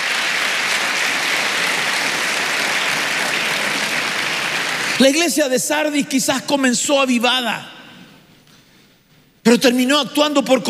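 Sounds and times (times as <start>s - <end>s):
audience clapping hands: 0.0s - 5.3s
speech: 5.0s - 7.8s, 9.5s - 10.6s.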